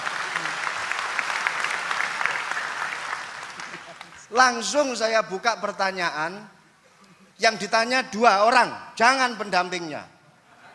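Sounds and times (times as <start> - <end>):
crowd applause: 0.0 - 4.4
speech: 4.3 - 6.6, 7.4 - 10.2.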